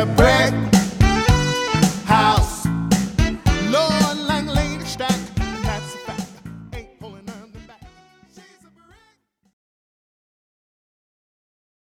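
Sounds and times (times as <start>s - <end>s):
variety band playing: 0.0s - 8.5s.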